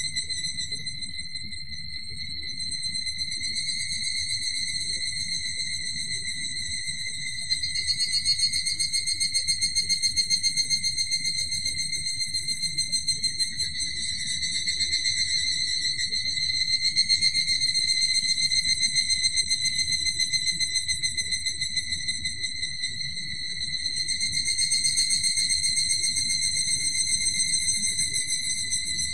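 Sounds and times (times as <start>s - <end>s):
evening cicada calling with high ringing pulsed trill: 0.0s - 29.1s.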